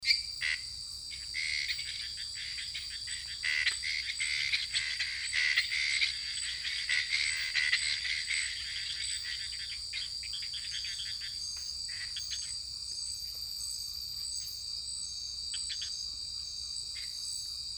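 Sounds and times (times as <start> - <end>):
lesser treefrog and unidentified tree frog calling in French Guiana: 0.1 - 12.6.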